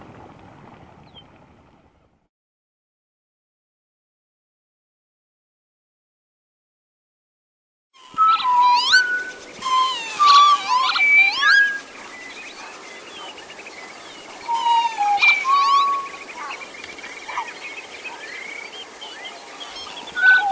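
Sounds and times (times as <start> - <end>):
bird studies: 8.0 - 20.5.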